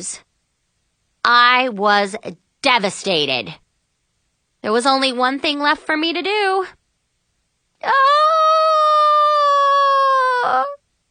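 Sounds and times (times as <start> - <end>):
speech: 0.0 - 0.3, 1.2 - 3.6, 4.6 - 6.8, 7.8 - 8.3
person screaming into a pillow: 7.8 - 10.8.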